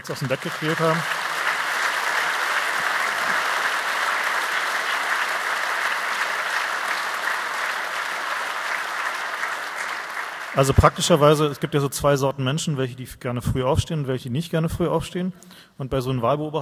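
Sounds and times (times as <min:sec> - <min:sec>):
speech: 0:00.0 - 0:01.2, 0:10.6 - 0:16.6
audience applause: 0:00.0 - 0:11.8.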